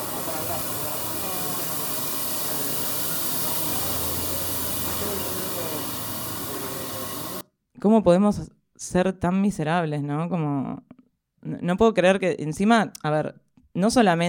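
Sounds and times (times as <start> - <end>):
machine stripping the hide from horses: 0.0 - 7.4
speech: 7.8 - 14.2.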